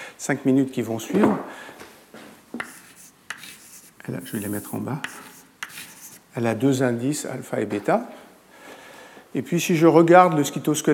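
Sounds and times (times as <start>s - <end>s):
speech: 0.2s - 1.8s, 4.1s - 5.3s, 6.4s - 8.2s, 9.3s - 10.9s
writing on a board during a physics lecture: 2.6s - 6.3s.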